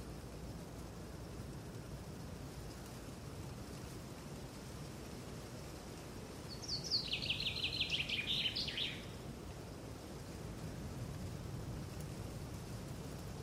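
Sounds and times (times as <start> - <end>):
rustling of leaves and trees in a spring forest: 0.0 - 13.4
wind in a green forest in spring: 0.0 - 13.4
birds in a green forest in spring: 6.5 - 9.2.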